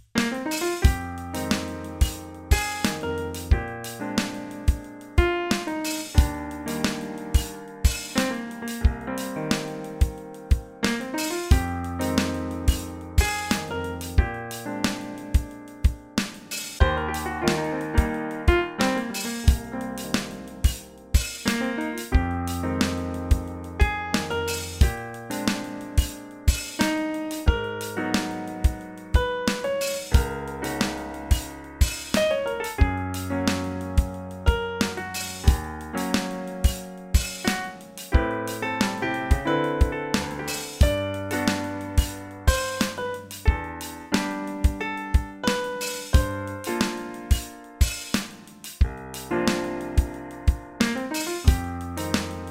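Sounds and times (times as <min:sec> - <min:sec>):
piano: 0:00.1 - 0:52.4.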